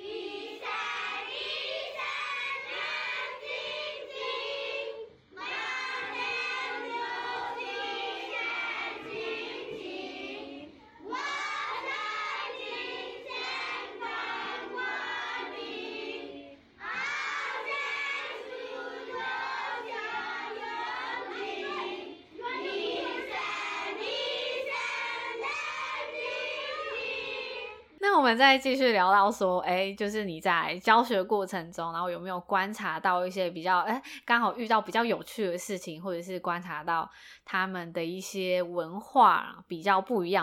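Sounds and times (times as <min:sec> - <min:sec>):
children singing: 0:00.0 - 0:27.9
speech: 0:28.3 - 0:40.4.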